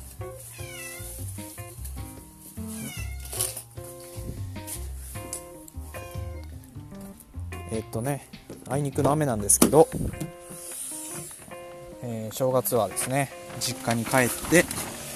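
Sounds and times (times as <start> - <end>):
cat meowing: 0.5 - 1.2, 2.6 - 3.6, 5.9 - 6.5
speech: 7.7 - 10.3, 12.3 - 14.7.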